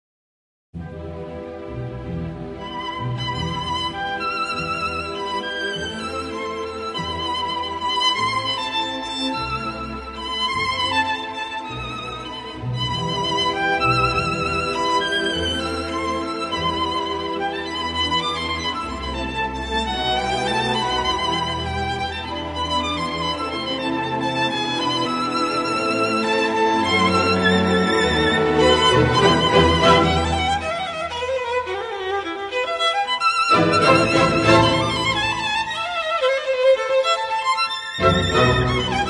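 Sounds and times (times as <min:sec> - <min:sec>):
violin concerto with orchestra: 0:00.8 - 0:39.0.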